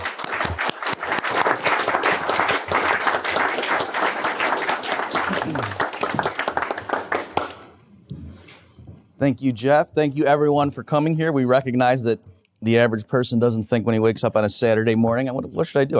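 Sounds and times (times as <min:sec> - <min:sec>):
round of applause: 0:00.0 - 0:07.8
speech: 0:09.2 - 0:15.9.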